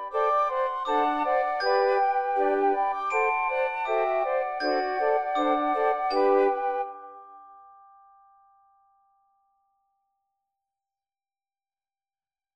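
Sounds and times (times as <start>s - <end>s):
solo flute duo and group of four flutes: 0.0s - 7.2s
glockenspiel: 0.0s - 10.3s.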